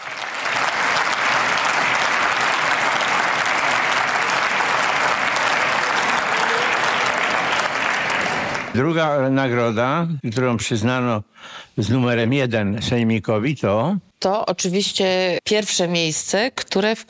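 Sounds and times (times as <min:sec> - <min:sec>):
audience applause: 0:00.0 - 0:08.9
speech: 0:08.8 - 0:17.0.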